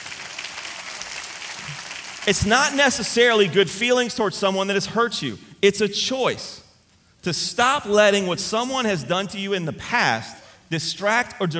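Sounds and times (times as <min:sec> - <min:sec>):
audience clapping: 0:00.0 - 0:03.0
speech: 0:02.3 - 0:06.6, 0:07.2 - 0:11.5.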